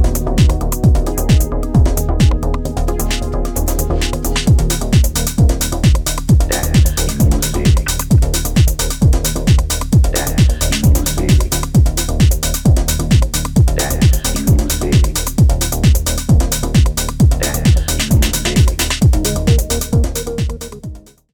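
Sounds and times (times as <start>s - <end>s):
techno bass: 0.0s - 21.3s.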